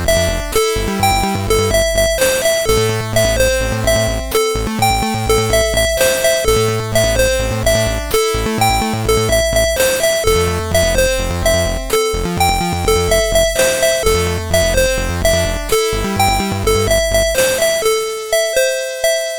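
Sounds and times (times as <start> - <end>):
dreamy bells on SID CSG8580R5 sound chip: 0.0 - 19.3.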